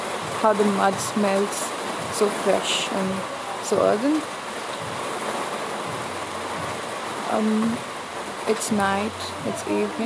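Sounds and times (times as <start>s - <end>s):
evening rain falling: 0.0s - 10.0s
speech: 0.4s - 5.0s, 7.3s - 7.9s, 8.5s - 10.0s.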